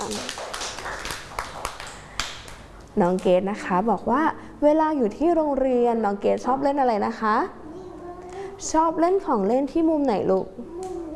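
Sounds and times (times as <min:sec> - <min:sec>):
young children and teacher clapping in a school classroom: 0:00.0 - 0:02.7
speech: 0:03.0 - 0:07.6, 0:08.6 - 0:10.8.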